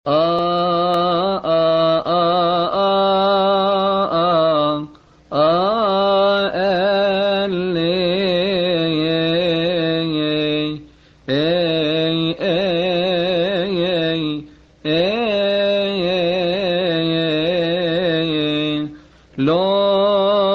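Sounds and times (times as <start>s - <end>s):
Lent psalm response singing: 0.1s - 20.5s.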